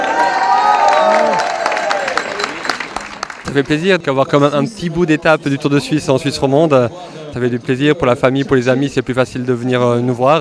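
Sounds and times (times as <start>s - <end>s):
crowd ovation with cheering and applause: 0.0s - 3.5s
speech: 3.6s - 10.3s.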